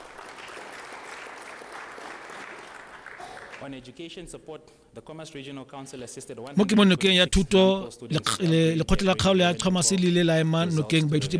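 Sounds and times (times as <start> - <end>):
audience applause at a regional council event honouring schools: 0.0 - 3.7
speech: 3.6 - 11.3.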